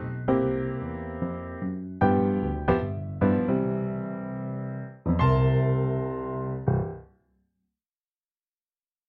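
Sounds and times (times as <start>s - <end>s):
solo piano: 0.0s - 7.2s.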